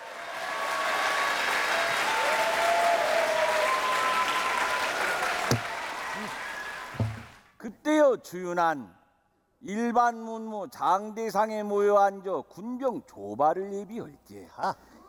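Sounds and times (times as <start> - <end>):
audience applause welcoming performer: 0.0 - 7.3
speech: 8.1 - 9.0, 9.6 - 14.9.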